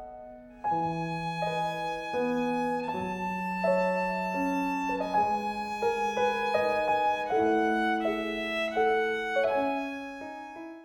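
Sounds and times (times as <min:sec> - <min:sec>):
violin: 0:00.5 - 0:10.8.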